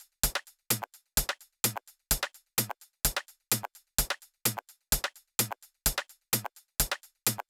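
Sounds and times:
drums: 0:00.0 - 0:07.4.

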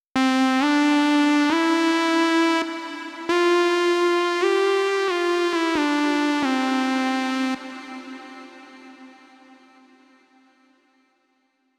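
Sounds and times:
wet main lead outro in C major at 134 BPM: 0:00.2 - 0:09.2.

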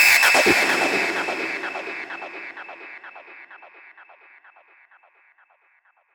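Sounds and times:
medium sweeps: 0:00.2 - 0:03.7.

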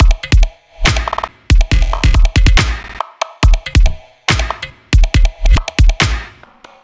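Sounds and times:
dubstep drum loop: 0:00.0 - 0:06.5.

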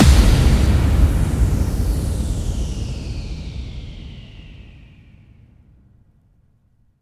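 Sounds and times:
bass drum FX kicks: 0:00.0 - 0:04.6.

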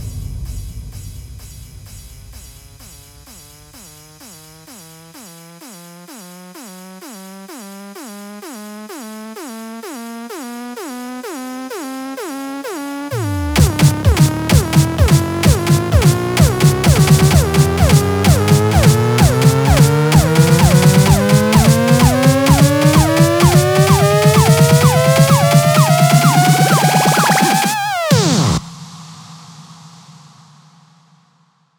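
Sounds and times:
electro house fills: 0:03.4 - 0:28.6.

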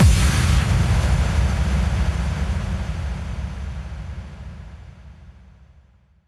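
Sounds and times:
explosions: 0:00.0 - 0:04.2
impact hits: 0:00.0 - 0:05.0.

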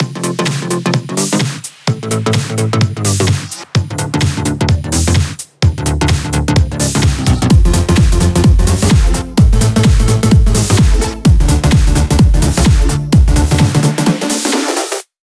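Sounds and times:
128 BPM music mix: 0:00.0 - 0:15.1.

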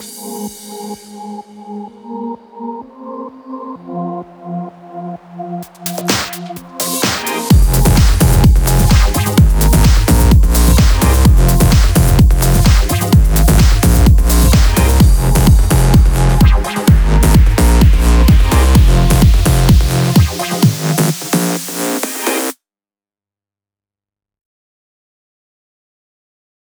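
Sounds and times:
128 BPM music mix: 0:00.0 - 0:22.6.

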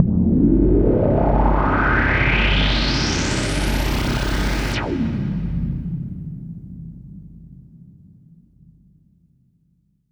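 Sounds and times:
uplifter riser: 0:00.4 - 0:06.1.

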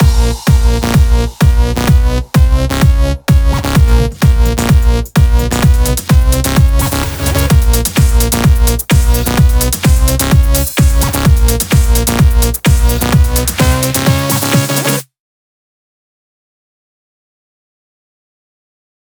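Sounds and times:
128 BPM music mix: 0:00.0 - 0:15.0.

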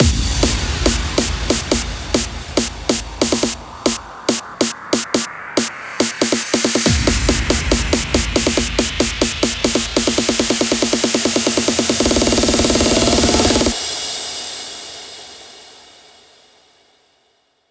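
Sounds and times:
hands up trance fills at 140 BPM: 0:00.0 - 0:13.8.

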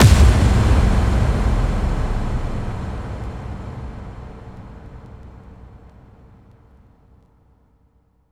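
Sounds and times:
bass drum FX kicks: 0:00.0 - 0:05.0.

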